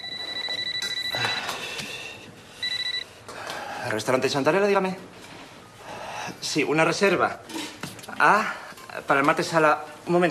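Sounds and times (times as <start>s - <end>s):
telephone ringing: 0.0s - 1.6s, 2.6s - 3.1s
speech: 3.8s - 5.2s, 6.4s - 7.6s, 8.2s - 10.2s.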